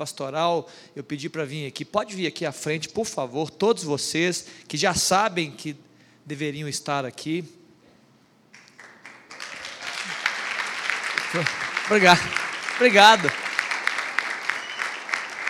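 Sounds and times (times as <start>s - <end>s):
speech: 0.0s - 7.6s, 11.3s - 13.4s
audience applause: 8.6s - 15.4s.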